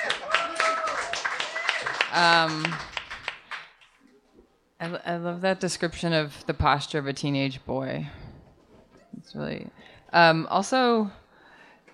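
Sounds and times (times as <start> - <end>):
voiced cheer: 0.0 - 2.1
group of people clapping: 0.0 - 4.0
speech: 2.1 - 2.9, 4.8 - 8.2, 9.2 - 11.2.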